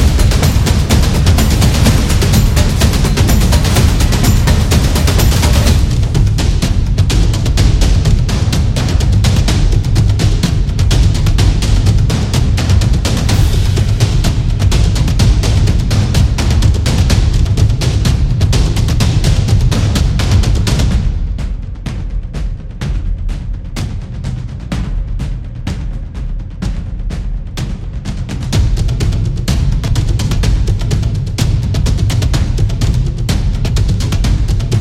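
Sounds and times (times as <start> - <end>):
tribal drums action music: 0.0 - 34.8.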